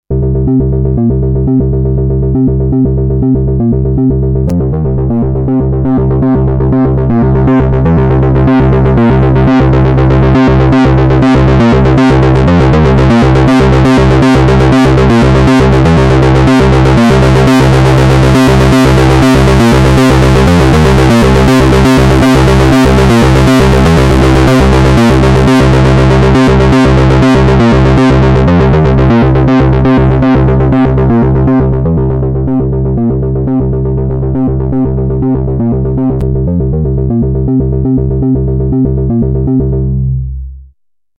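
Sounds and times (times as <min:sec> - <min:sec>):
distortion: 0:00.0 - 0:41.1.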